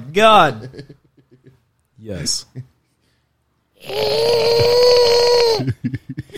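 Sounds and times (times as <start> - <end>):
speech: 0.2 - 1.0, 2.0 - 2.7, 3.8 - 6.3
voice imitating a monster's growl: 3.8 - 5.6.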